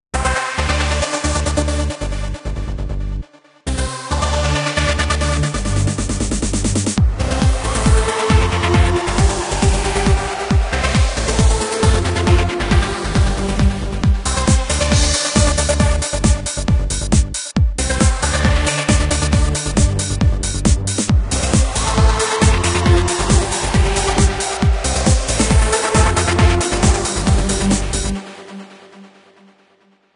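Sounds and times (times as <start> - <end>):
trance music: 0.2 - 29.8.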